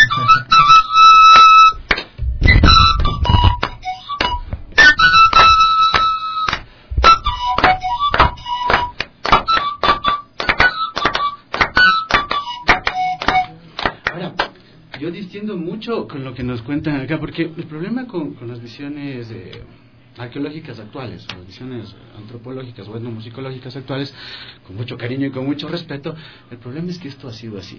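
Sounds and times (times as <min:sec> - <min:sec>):
rhythmic hand clapping: 0:00.0 - 0:15.1
speech: 0:16.1 - 0:27.7.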